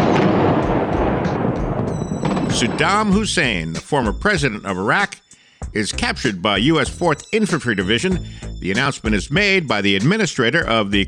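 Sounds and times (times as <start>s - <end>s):
explosions of a massive airstrike on military targets in Baghdad: 0.0s - 4.6s
speech: 2.6s - 11.0s.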